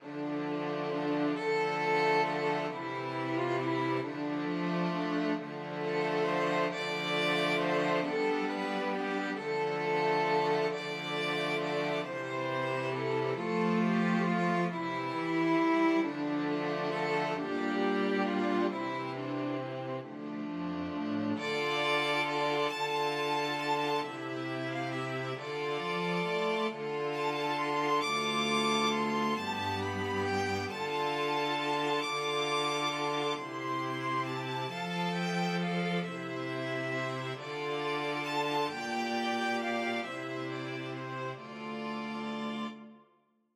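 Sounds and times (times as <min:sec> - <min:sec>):
string quartet: 0:00.0 - 0:43.0.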